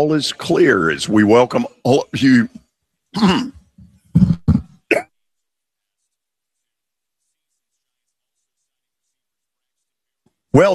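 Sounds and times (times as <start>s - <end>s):
speech: 0.0s - 3.6s, 10.6s - 10.7s
person clearing throat: 3.2s - 5.1s
person coughing: 3.2s - 5.1s.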